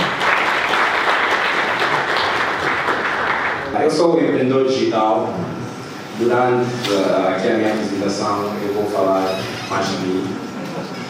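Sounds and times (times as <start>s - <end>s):
round of applause: 0.0s - 3.7s
speech: 4.0s - 5.6s, 6.2s - 10.4s.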